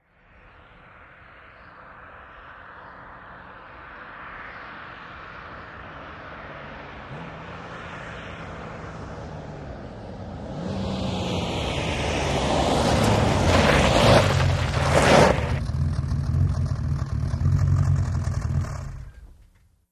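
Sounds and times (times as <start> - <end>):
Aston Martin approaching fast and stopping: 0.4 - 19.6
tyres on gravel: 12.0 - 19.4
Aston Martin engine switching off: 15.5 - 19.7.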